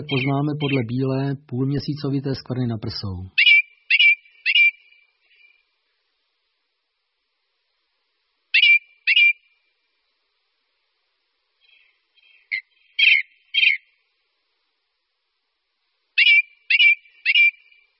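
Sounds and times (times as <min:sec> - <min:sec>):
ring ouzel song of rough notes: 0:00.0 - 0:01.0, 0:03.3 - 0:05.6, 0:11.6 - 0:14.0, 0:16.2 - 0:17.9
speech: 0:00.0 - 0:03.4.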